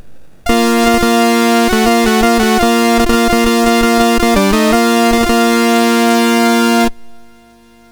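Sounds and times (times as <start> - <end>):
fanfare on MOS6581 sound chip: 0.5 - 7.9.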